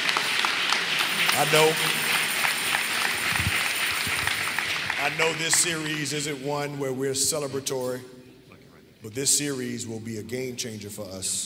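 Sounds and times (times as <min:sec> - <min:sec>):
audience clapping: 0:00.0 - 0:06.4
speech: 0:01.4 - 0:02.0, 0:05.0 - 0:08.2, 0:09.0 - 0:11.4.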